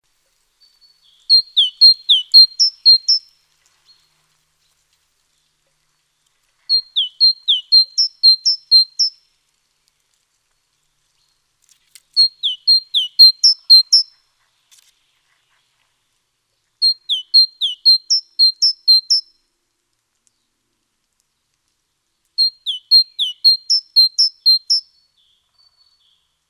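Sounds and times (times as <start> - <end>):
Great tit song, Parus major: 0.6 - 3.3, 6.7 - 9.2, 12.1 - 14.2, 16.8 - 19.4, 22.4 - 26.1.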